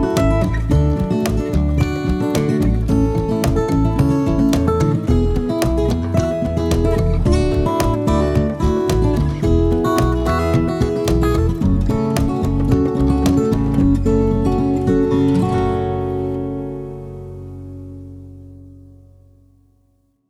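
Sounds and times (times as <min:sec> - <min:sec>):
percussion: 0:00.0 - 0:14.9
funky acoustic guitar: 0:00.0 - 0:20.1.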